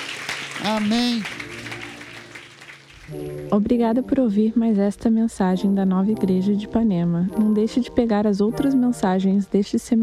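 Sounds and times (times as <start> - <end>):
crowd applause: 0.0 - 3.4
speech: 0.6 - 1.4, 3.1 - 10.0.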